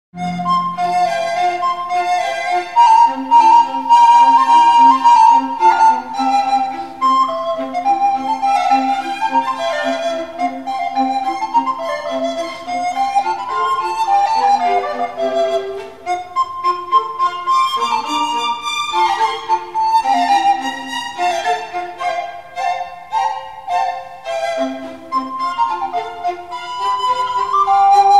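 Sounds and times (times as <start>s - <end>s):
flogera shepherd's flute: 0.2s - 28.1s.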